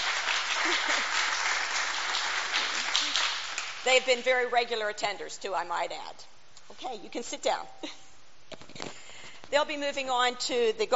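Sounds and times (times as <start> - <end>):
audience applause: 0.0 - 3.8
speech: 0.6 - 1.2, 3.8 - 8.0, 9.5 - 10.9.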